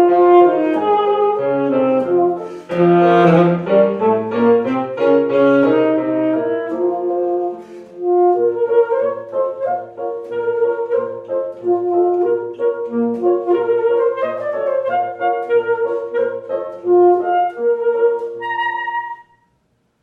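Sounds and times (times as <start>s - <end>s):
alto saxophone solo: 0.0s - 19.5s.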